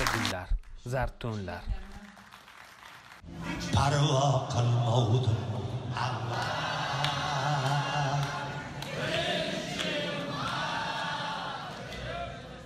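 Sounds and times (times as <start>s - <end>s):
speech: 0.4s - 1.9s, 3.3s - 6.8s
concert hall audience singing along with a hafiz singer: 5.6s - 12.6s.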